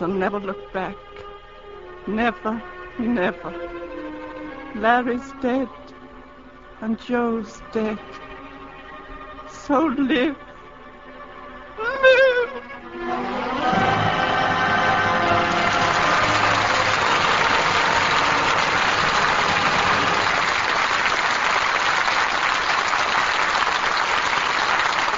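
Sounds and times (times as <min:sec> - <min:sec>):
speech: 0:00.0 - 0:01.2, 0:02.0 - 0:05.9, 0:06.8 - 0:08.2, 0:09.6 - 0:10.5
low tonal hum: 0:00.0 - 0:21.0
audience applause after a play: 0:13.0 - 0:25.1.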